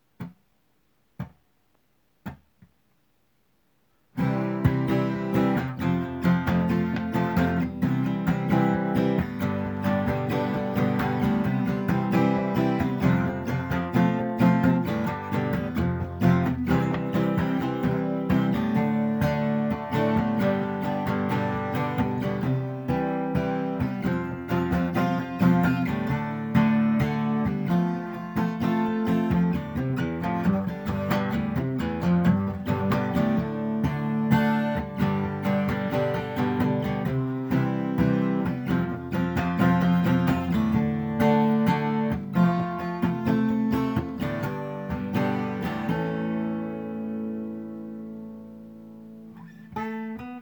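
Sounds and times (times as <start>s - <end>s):
acoustic music: 4.0s - 50.4s.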